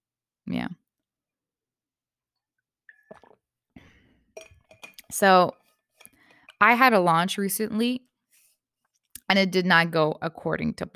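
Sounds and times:
speech: 0.5 - 0.8, 5.2 - 5.6, 6.6 - 8.0, 9.3 - 10.9
person sipping water: 2.9 - 5.0.

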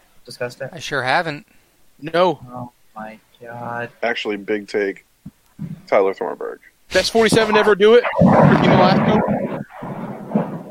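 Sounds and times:
speech: 0.2 - 9.4
thunder: 7.3 - 10.6.

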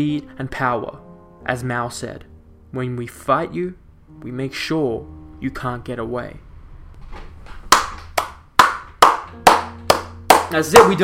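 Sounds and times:
speech: 0.0 - 6.4, 10.5 - 11.0
sharp hand claps: 7.7 - 11.0.

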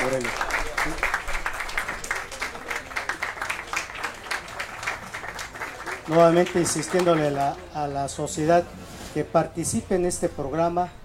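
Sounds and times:
audience applause: 0.0 - 7.7
speech: 6.1 - 11.0.

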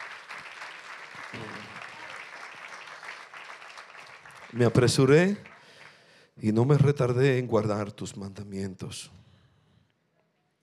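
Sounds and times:
audience applauding: 0.0 - 6.1
speech: 4.5 - 5.5, 6.4 - 9.2.

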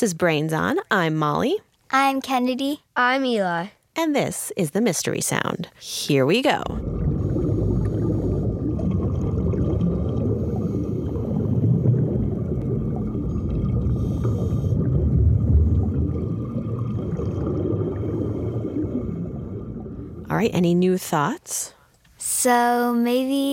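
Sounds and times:
speech: 0.0 - 7.0, 20.4 - 23.5
scuba diver breathing underwater with exhaled bubbles: 6.7 - 20.3.

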